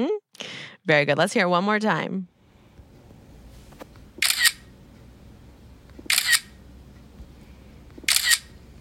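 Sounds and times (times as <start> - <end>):
speech: 0.8 - 2.3
camera phone shutter click: 4.2 - 4.7, 6.0 - 6.6, 8.0 - 8.5.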